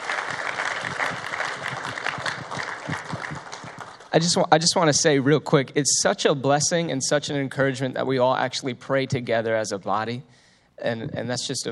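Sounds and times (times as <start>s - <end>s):
audience applauding first-time visitors: 0.0s - 4.6s
speech: 4.2s - 11.7s.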